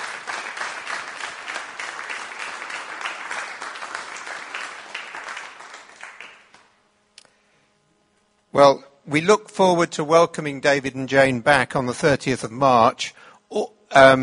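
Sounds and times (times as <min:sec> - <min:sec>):
crowd applause: 0:00.0 - 0:06.7
speech: 0:08.6 - 0:14.2.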